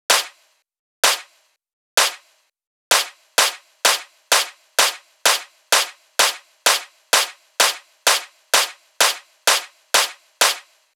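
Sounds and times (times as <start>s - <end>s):
drum loop: 0.1s - 0.4s, 1.0s - 1.4s, 2.0s - 10.9s
hand claps: 2.9s - 10.7s.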